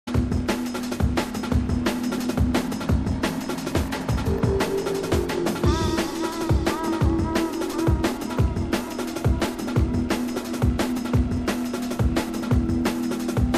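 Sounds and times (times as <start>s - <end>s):
drum and bass jungle and old skool music on UK Bass Radio: 0.1s - 13.5s.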